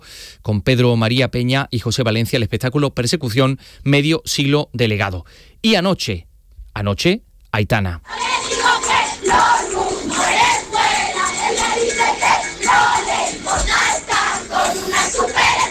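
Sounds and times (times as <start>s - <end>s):
speech: 0.4s - 8.2s
twenty thousand concert spectators singing along at Icónica Festival in Seville: 8.1s - 15.6s.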